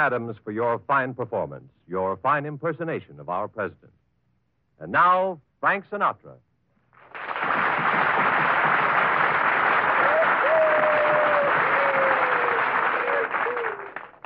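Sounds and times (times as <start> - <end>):
speech: 0.0 - 4.0, 4.8 - 6.5
audience applause: 7.0 - 14.2.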